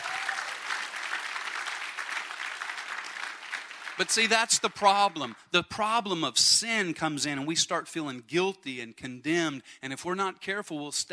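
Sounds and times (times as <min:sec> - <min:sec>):
audience clapping: 0:00.0 - 0:06.0
speech: 0:04.0 - 0:11.1.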